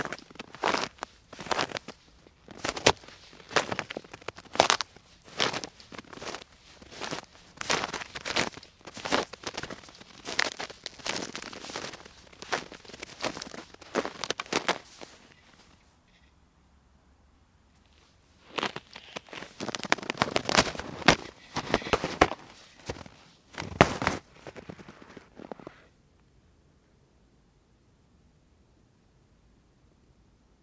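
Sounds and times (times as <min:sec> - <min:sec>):
footsteps in snow: 0:00.0 - 0:15.9, 0:17.8 - 0:25.9.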